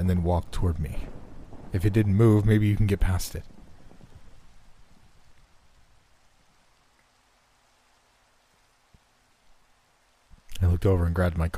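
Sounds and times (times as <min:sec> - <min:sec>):
speech: 0:00.0 - 0:03.5, 0:10.8 - 0:11.5
rain falling: 0:00.0 - 0:11.5.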